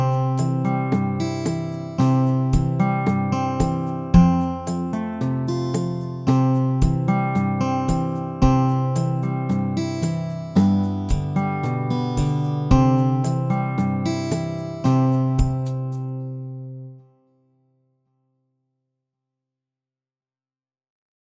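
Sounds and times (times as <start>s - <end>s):
ukulele without melody: 0.0s - 16.6s.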